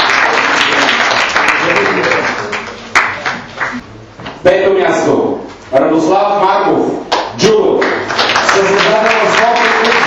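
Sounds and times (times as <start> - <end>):
audience applause: 0.0 - 3.8, 7.8 - 10.0
speech: 4.4 - 10.0.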